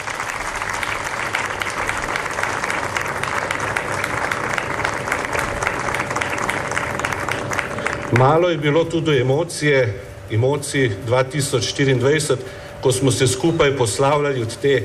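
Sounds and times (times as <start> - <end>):
audience applause: 0.0 - 8.7
speech: 8.1 - 14.8.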